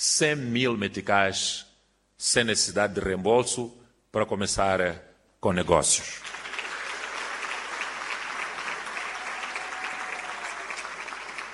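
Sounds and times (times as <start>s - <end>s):
speech: 0.0s - 6.4s
applause: 6.1s - 11.5s.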